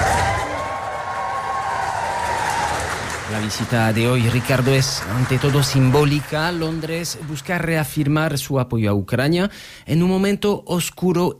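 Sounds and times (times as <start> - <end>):
cheers and whoops: 0.0 - 3.3
crowd applauding outdoors at Downing Street doors: 0.0 - 8.1
speech: 3.3 - 11.3.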